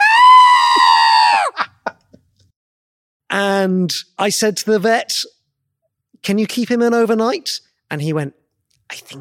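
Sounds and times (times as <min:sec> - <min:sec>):
human voice imitating a sick rabbit's scream of pain: 0:00.0 - 0:01.6
speech: 0:03.4 - 0:05.4, 0:06.2 - 0:09.1.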